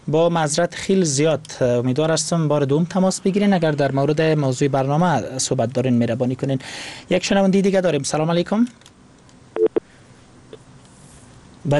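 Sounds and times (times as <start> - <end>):
low steady hiss: 0.0 - 11.7
speech: 0.1 - 8.9
telephone line tones after a caller is cut off: 9.6 - 9.8.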